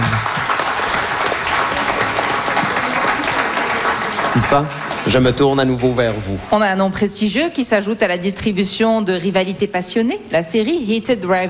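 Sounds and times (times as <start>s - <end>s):
audience applause: 0.0s - 6.4s
speech: 4.4s - 11.4s.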